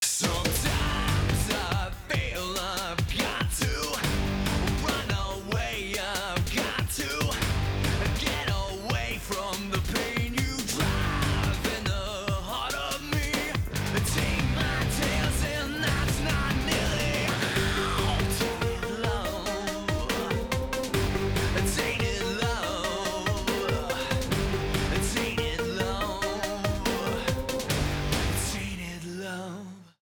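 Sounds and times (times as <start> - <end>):
stereo music: 0.0 - 29.0.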